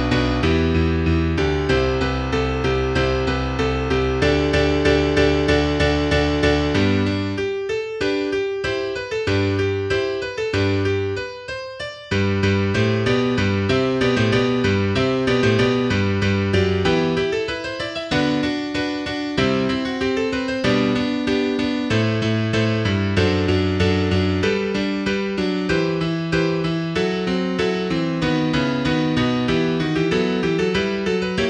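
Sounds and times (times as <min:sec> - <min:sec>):
piano piece: 0:00.0 - 0:31.4.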